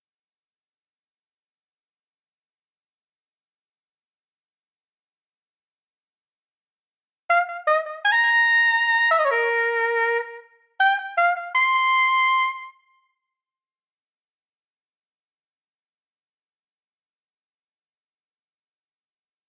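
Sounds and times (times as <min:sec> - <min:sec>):
saxophone: 0:07.3 - 0:12.9.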